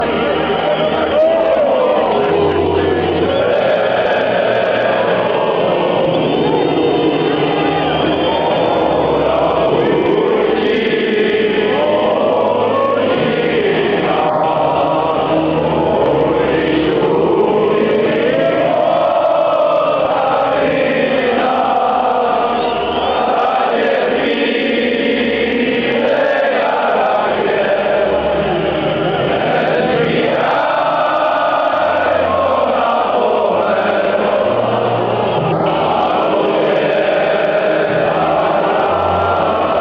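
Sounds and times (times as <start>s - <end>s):
football fans chanting a national anthem: 0.0s - 39.8s.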